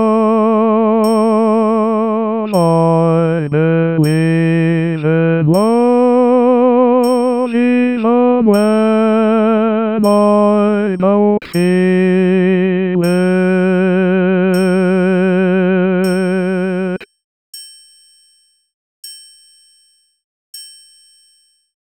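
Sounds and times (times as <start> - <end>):
solo low voice: 0.0 - 17.0.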